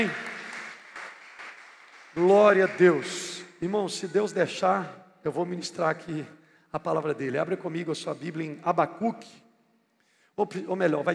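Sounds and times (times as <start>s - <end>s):
speech: 0.0s - 0.2s, 2.2s - 9.4s, 10.4s - 11.1s
audience applauding: 0.0s - 3.4s.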